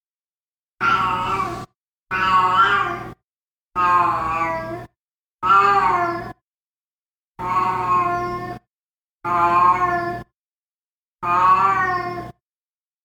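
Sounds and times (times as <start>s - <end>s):
cat howling: 0.8s - 3.2s, 3.8s - 4.8s, 5.4s - 6.4s, 7.4s - 8.6s, 9.3s - 10.2s, 11.2s - 12.4s.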